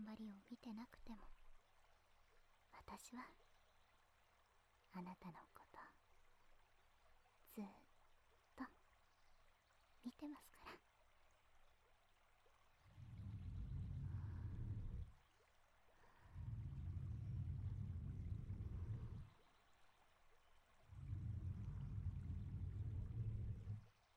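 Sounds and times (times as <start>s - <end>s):
babbling brook: 0.0s - 24.1s
whispering: 2.7s - 3.4s, 4.9s - 6.0s, 10.1s - 10.8s, 12.9s - 15.1s, 16.1s - 19.3s, 20.9s - 23.9s.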